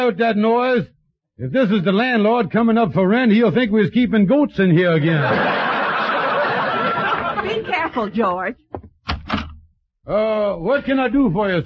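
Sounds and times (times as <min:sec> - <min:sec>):
speech: 0:00.0 - 0:05.6, 0:07.9 - 0:08.6, 0:10.1 - 0:11.6
laughter: 0:04.9 - 0:08.4
apartment door being opened: 0:08.7 - 0:09.7.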